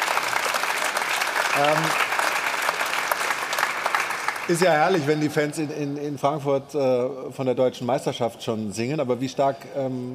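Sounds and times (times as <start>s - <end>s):
applause: 0.0s - 5.7s
speech: 1.6s - 2.1s, 4.5s - 10.1s.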